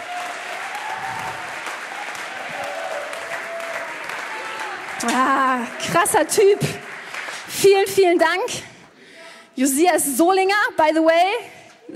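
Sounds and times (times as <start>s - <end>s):
audience applause: 0.0s - 7.6s
speech: 5.0s - 6.9s, 7.5s - 8.7s, 9.6s - 11.9s.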